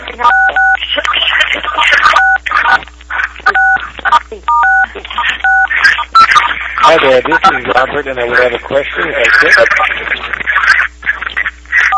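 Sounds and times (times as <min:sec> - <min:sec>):
people talking over a conference call line: 0:00.0 - 0:11.9
speech: 0:00.2 - 0:00.4, 0:06.9 - 0:10.3
touch-tone telephone keypad beeps from pressing star 6 on a conference call: 0:00.3 - 0:00.8, 0:04.5 - 0:04.8, 0:05.4 - 0:06.3.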